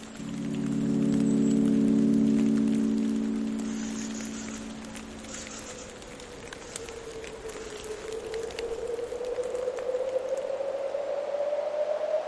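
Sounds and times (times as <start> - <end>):
low droning chord: 0.0 - 6.6
soft crackle: 0.0 - 12.2.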